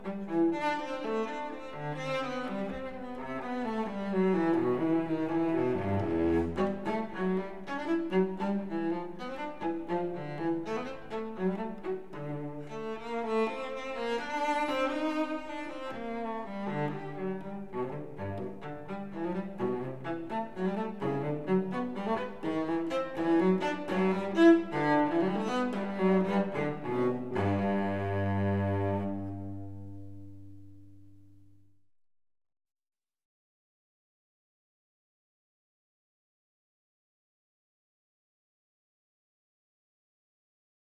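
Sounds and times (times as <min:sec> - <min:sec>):
cello suite gigue: 0:00.0 - 0:31.3.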